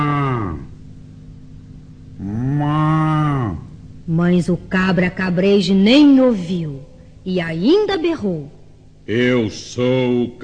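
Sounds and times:
ox mooing: 0.0s - 0.7s, 2.2s - 3.8s
speech: 4.1s - 10.4s.

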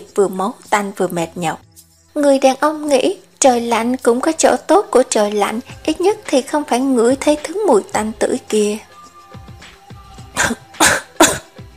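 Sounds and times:
speech: 0.1s - 8.9s
violent dry coughing: 10.4s - 11.6s.

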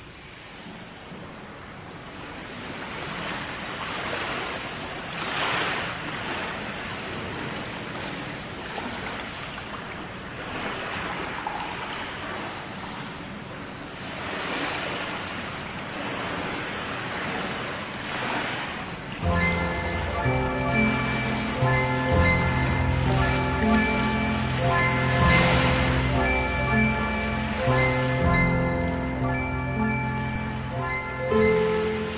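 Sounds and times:
ocean waves washing: 2.1s - 32.1s.

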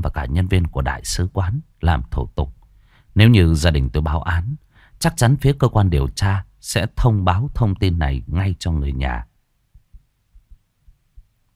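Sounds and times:
speech: 0.2s - 2.6s, 3.2s - 9.3s
pounding heartbeat: 9.7s - 11.4s.

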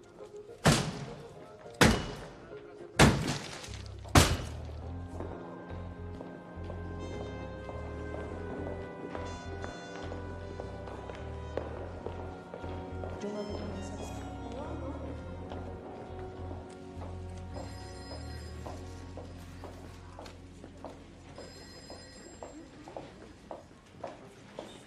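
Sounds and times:
soft sustained music: 0.0s - 24.3s
big hammer smashing something: 3.0s - 4.7s.

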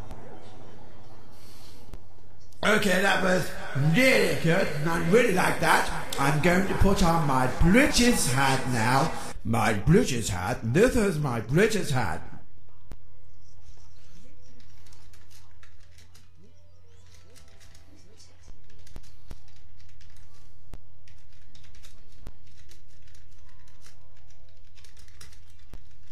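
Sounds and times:
speech: 2.6s - 12.3s
laughter: 3.8s - 9.3s
typing on a computer keyboard: 14.5s - 16.3s, 17.0s - 26.0s.

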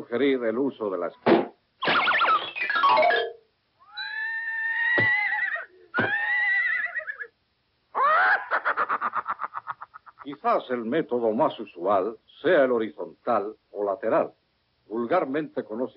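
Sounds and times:
speech: 0.0s - 1.6s, 2.9s - 3.4s, 10.4s - 15.9s
cartoon horse Rocinante neighing in a Disney Goofy cartoon: 3.8s - 7.3s
laughter: 8.0s - 10.3s.

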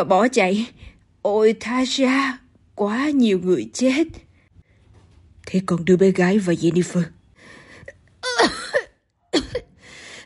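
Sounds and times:
speech: 0.0s - 4.2s, 5.5s - 7.2s
woman coughing violently: 8.2s - 9.8s.

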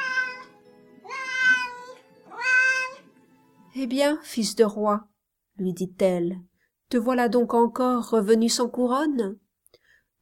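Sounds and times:
cats on the gutters meowing desperately: 0.0s - 3.1s
speech: 3.8s - 9.4s.

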